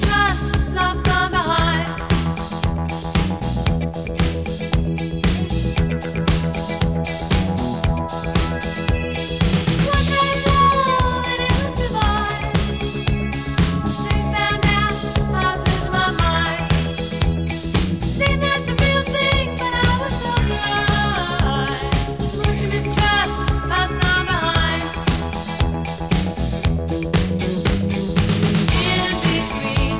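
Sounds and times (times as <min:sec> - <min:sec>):
disco music: 0:00.0 - 0:29.9.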